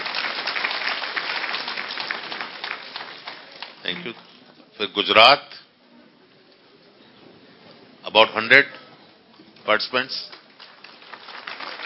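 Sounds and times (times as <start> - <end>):
crowd applauding: 0.0 - 4.3, 10.3 - 11.8
speech: 3.8 - 5.6, 8.1 - 8.8, 9.7 - 10.4.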